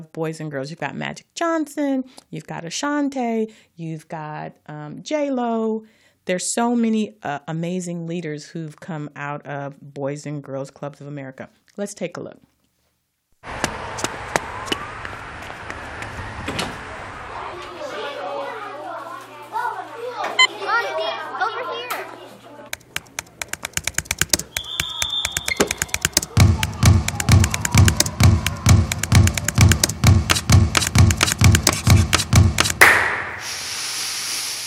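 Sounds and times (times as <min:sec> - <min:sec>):
speech: 0:00.0 - 0:12.5
children chattering and shouting at an after-school Boys and Girls Club: 0:16.7 - 0:22.7
thumps and taps: 0:22.7 - 0:33.0
rapid steady rhythmic thuds: 0:22.7 - 0:33.4.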